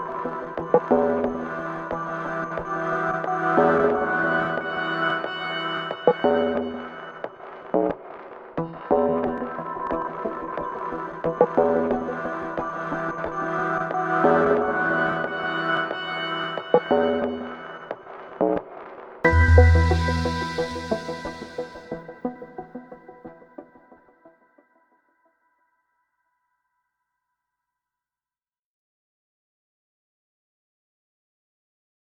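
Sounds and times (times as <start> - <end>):
upscale ambient background music: 0.0 - 18.6, 19.2 - 24.5.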